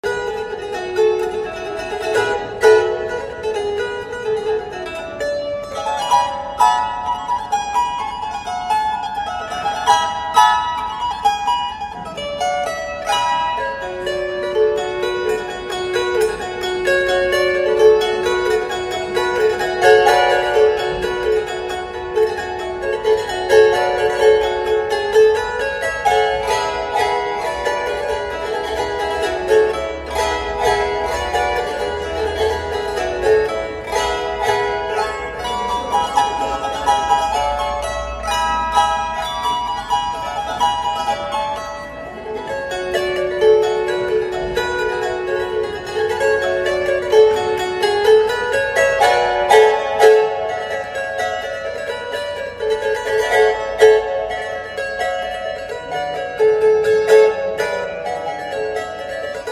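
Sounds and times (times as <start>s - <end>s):
gusli playing: 0.0s - 59.5s.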